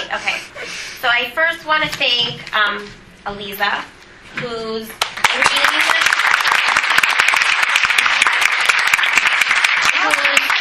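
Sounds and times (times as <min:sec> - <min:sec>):
speech: 0:00.1 - 0:00.4, 0:01.1 - 0:05.9
audience applause: 0:05.1 - 0:10.6.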